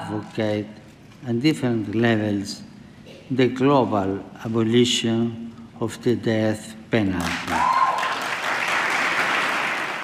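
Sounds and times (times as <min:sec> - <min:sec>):
speech: 0:00.1 - 0:02.7, 0:03.3 - 0:07.6
members of Congress applauding in a played video: 0:07.2 - 0:10.0.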